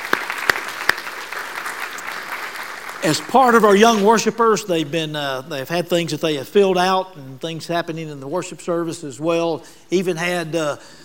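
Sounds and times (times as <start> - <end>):
audience applause: 0.0 - 4.0
speech: 3.0 - 11.0.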